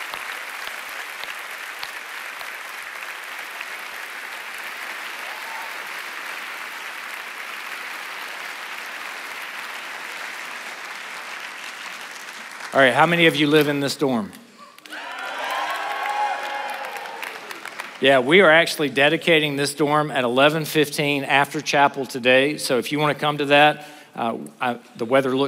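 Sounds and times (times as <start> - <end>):
audience applause: 0.0 - 13.3, 14.6 - 18.5
speech: 12.8 - 14.4, 18.0 - 25.4.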